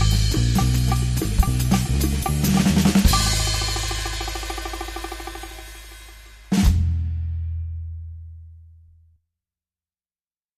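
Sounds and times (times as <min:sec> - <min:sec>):
drums: 0:00.0 - 0:08.4
bass: 0:00.0 - 0:09.2.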